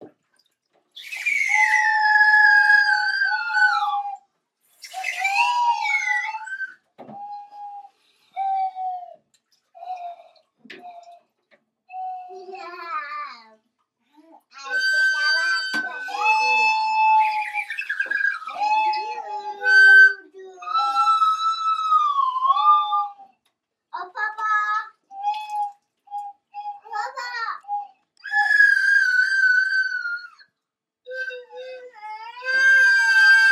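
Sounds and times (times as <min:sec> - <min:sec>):
flutes playing symphonic music: 0:01.0 - 0:04.2, 0:04.8 - 0:09.2, 0:11.9 - 0:12.5, 0:14.6 - 0:23.3, 0:25.1 - 0:30.5, 0:31.1 - 0:33.5.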